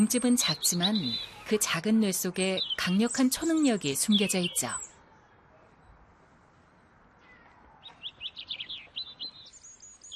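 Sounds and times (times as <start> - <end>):
speech: 0.0 - 4.9
European robin singing: 0.0 - 5.0, 7.2 - 10.1.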